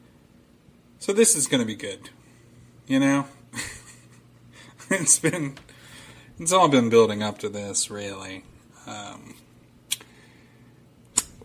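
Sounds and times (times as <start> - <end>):
speech: 1.0 - 2.2, 2.9 - 3.4, 6.4 - 9.4
man lip smacking: 9.9 - 10.1.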